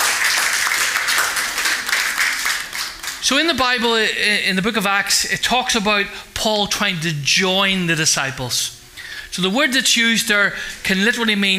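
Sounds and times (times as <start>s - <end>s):
audience clapping: 0.0s - 3.2s
speech: 3.3s - 11.5s.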